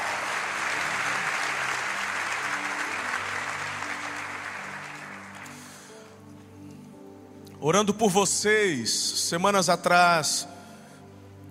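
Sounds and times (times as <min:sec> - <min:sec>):
audience applause: 0:00.0 - 0:05.8
speech: 0:07.6 - 0:10.6.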